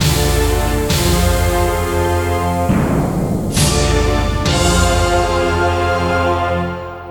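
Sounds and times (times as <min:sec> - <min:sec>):
music loop: 0:00.2 - 0:05.8.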